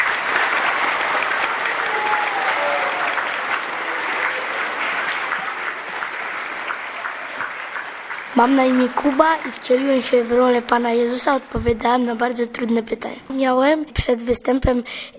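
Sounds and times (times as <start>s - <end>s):
crowd clapping: 0.0s - 12.1s
speech: 8.4s - 15.1s.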